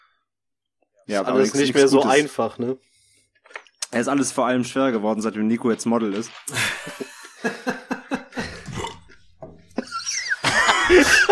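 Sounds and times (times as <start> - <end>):
speech: 1.1 - 2.9, 3.9 - 7.8
laugh mixed with a burp: 6.6 - 11.3.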